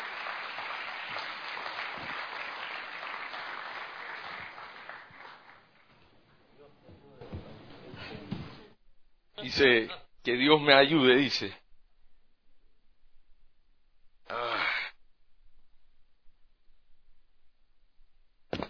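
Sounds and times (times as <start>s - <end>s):
audience applause: 0.0s - 6.0s
speech: 9.4s - 11.6s.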